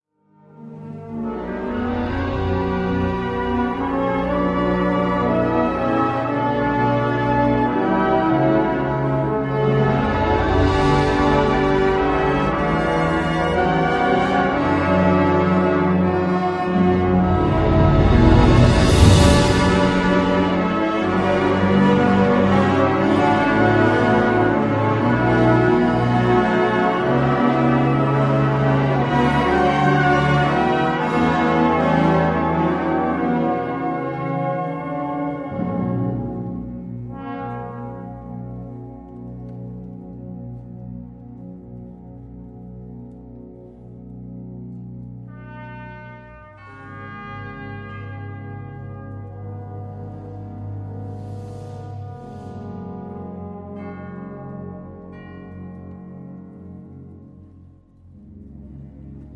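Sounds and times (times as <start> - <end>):
slow music: 0.3 - 59.3.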